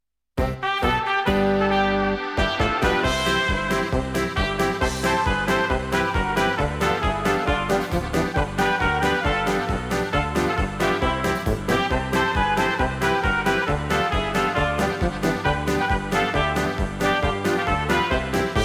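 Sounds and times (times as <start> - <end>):
polka music: 0.4 - 18.6.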